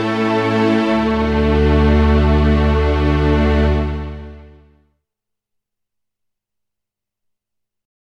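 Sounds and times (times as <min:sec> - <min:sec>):
Roland HP702 digital piano Symphonic Strings voice: 0:00.0 - 0:04.7.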